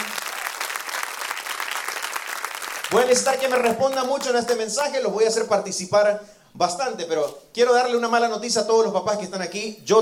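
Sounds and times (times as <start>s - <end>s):
audience applause: 0.0s - 4.4s
speech: 2.9s - 10.0s.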